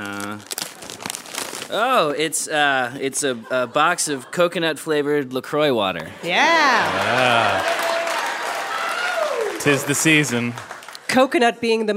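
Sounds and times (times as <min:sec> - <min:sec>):
gift wrapping paper being torn open: 0:00.0 - 0:02.1
speech: 0:01.7 - 0:07.8, 0:09.6 - 0:11.9
laughter: 0:03.1 - 0:05.0, 0:06.4 - 0:08.7.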